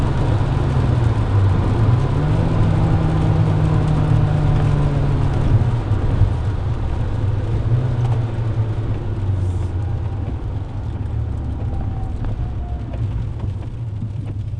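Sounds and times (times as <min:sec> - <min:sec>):
Peugeot 206 engine with direct intake kit: 0:00.0 - 0:14.5.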